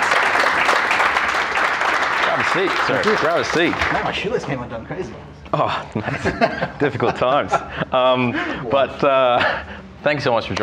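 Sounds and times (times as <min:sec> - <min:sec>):
audience applause welcoming a guest onto a show: 0:00.0 - 0:04.2
speech: 0:02.5 - 0:10.6
laughter: 0:05.5 - 0:09.8.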